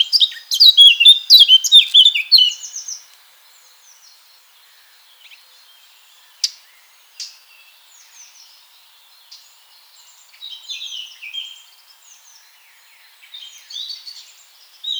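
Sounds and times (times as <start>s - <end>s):
Eurasian blackcap Sylvia atricapilla song bursts: 0.0s - 2.9s.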